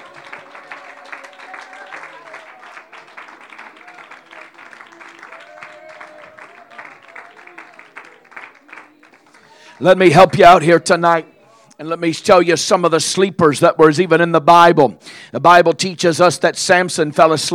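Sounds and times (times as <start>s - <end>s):
audience clapping hands: 0.0s - 10.6s
speech: 9.8s - 17.5s.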